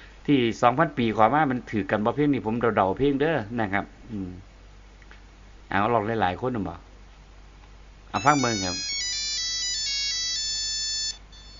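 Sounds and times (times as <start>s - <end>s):
faint hiss: 0.0s - 11.5s
speech: 0.3s - 4.5s, 5.7s - 6.9s, 8.1s - 8.9s
electronic telephone ringtone with a bright high melody: 8.2s - 11.5s.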